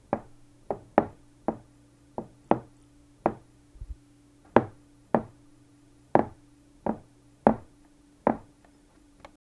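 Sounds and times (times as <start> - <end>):
single footstep on a wooden board: 0.1 - 3.5, 4.5 - 5.4, 6.2 - 7.7, 8.3 - 8.5.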